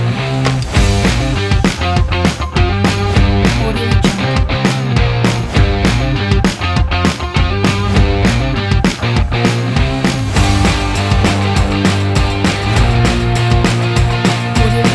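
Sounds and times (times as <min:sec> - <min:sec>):
upbeat energetic indie rock music: 0:00.0 - 0:14.9.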